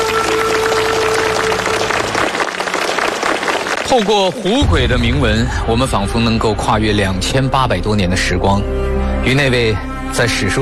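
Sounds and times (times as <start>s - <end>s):
applause: 0.0s - 4.6s
speech: 3.9s - 10.6s.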